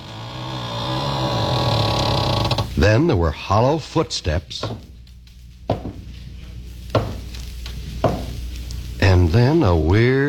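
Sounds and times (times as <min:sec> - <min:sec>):
door opening: 0:00.0 - 0:02.8
speech: 0:02.8 - 0:04.9, 0:09.4 - 0:10.2.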